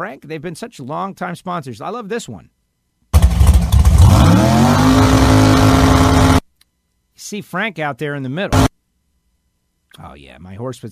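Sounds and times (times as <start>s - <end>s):
speech: 0.0s - 2.6s, 7.2s - 8.7s, 9.9s - 10.9s
drag racing car accelerating down racetrack: 3.2s - 6.4s.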